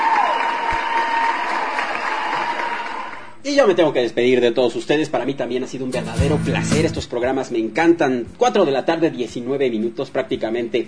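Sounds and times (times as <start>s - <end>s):
applause: 0.0s - 3.4s
speech: 3.4s - 10.8s.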